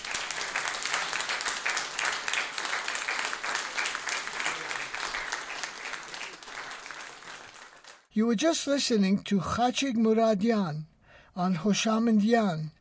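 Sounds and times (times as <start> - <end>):
audience applause: 0.0 - 8.1
speech: 8.2 - 12.8.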